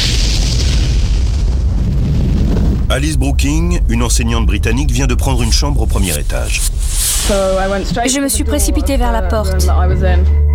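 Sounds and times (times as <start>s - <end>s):
explosion of crashing supersonic airliner: 0.0s - 8.1s
speech: 2.9s - 10.4s.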